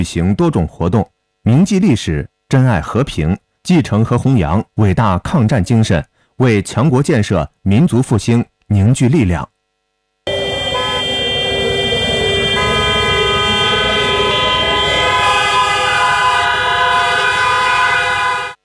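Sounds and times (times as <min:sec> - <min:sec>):
speech: 0:00.0 - 0:09.6
air raid siren: 0:10.3 - 0:18.6.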